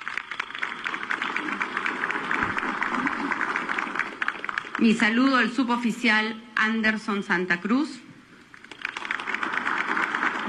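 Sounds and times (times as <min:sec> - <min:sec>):
audience applause: 0:00.0 - 0:05.1, 0:08.6 - 0:10.4
speech: 0:04.8 - 0:08.0.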